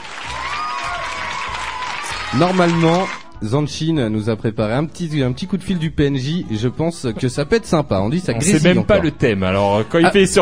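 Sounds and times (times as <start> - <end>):
applause sound effect: 0.0 - 3.3
speech: 2.3 - 10.3.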